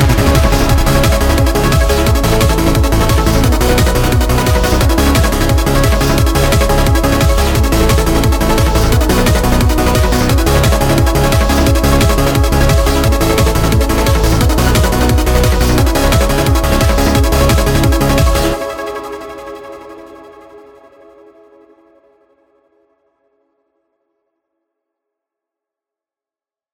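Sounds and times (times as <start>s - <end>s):
trance music: 0.0s - 21.0s.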